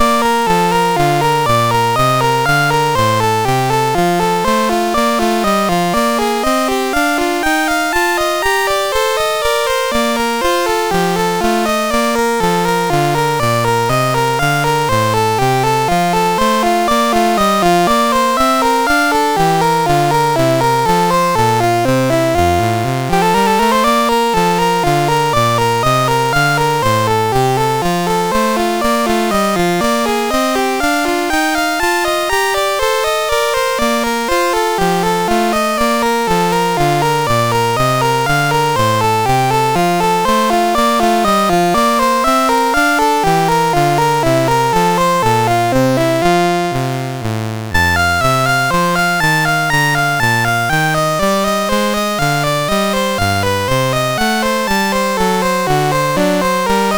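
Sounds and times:
MOS6581 SID chip synth sound: 0:00.0 - 0:56.9.

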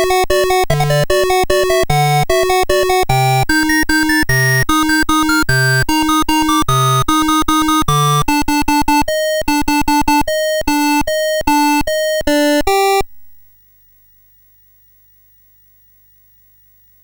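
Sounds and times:
MOS6581R2 SID chip synth: 0:00.0 - 0:13.1.

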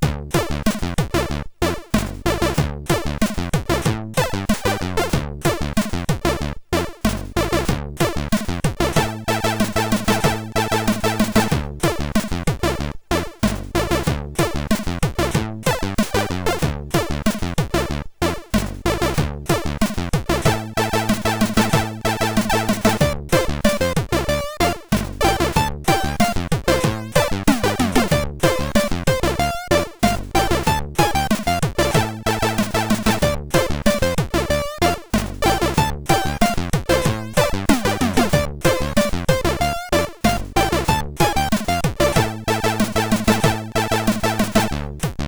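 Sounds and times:
MOS6581R3 SID chip music: 0:00.1 - 0:45.1.

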